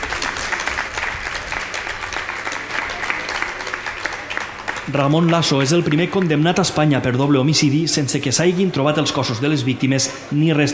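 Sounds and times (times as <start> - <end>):
audience applause: 0.0 - 6.9
speech: 4.9 - 10.7.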